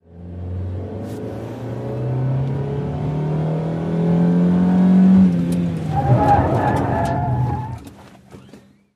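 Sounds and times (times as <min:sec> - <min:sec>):
compact car engine revving: 0:00.1 - 0:07.9
compact car tires skidding in a 180 turn: 0:05.6 - 0:08.9.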